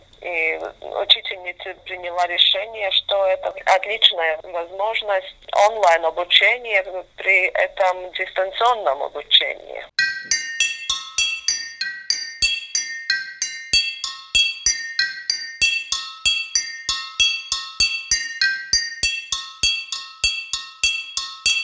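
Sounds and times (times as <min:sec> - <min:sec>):
speech: 0:00.2 - 0:10.4
struck glass flasks with different water levels ringing: 0:10.0 - 0:21.6.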